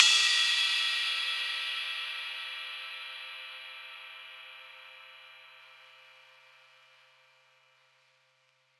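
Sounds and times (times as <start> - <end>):
ride cymbal: 0.0 - 4.5.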